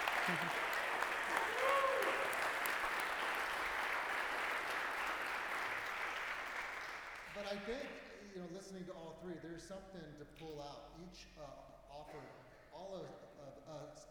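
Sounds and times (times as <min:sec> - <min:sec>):
audience applause: 0:00.0 - 0:08.1
speech: 0:00.3 - 0:00.8, 0:07.5 - 0:14.0.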